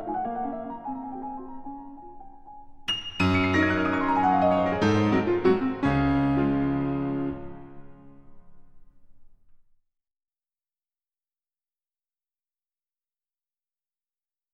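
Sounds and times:
waltz in D-flat major: 0:00.0 - 0:08.7.

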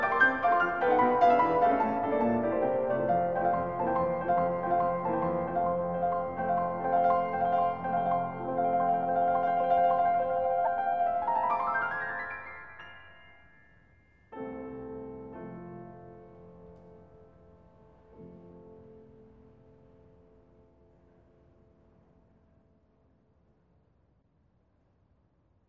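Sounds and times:
etude in F major: 0:00.0 - 0:13.5.

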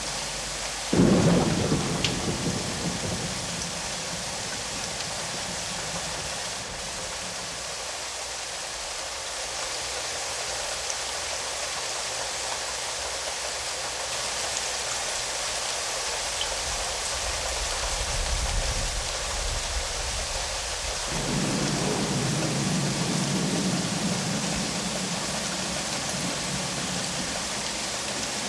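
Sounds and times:
light and heavy rain: 0:00.0 - 0:28.4
thunder: 0:00.9 - 0:07.6, 0:21.0 - 0:27.7.

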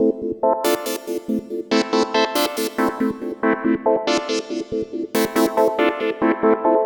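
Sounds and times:
synth lead: 0:00.0 - 0:06.6.

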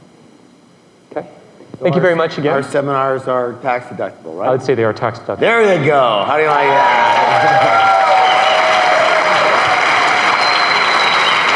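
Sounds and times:
speech: 0:01.2 - 0:07.8
audience applause: 0:06.5 - 0:11.5.

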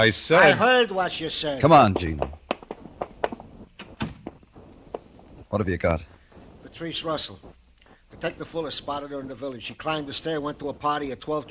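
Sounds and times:
speech: 0:00.0 - 0:02.4, 0:05.5 - 0:06.1, 0:06.7 - 0:07.5, 0:08.2 - 0:11.4
door being closed: 0:03.8 - 0:04.3.

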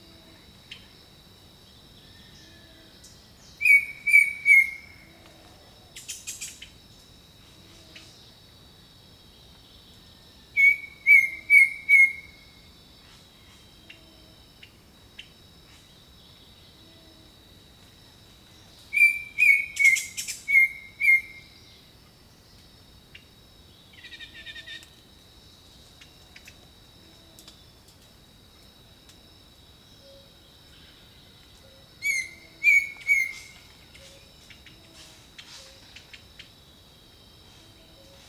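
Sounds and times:
insect drone: 0:00.0 - 0:38.2
songbird whistling song: 0:03.6 - 0:05.0, 0:10.6 - 0:12.4, 0:18.9 - 0:21.4, 0:31.6 - 0:34.2.

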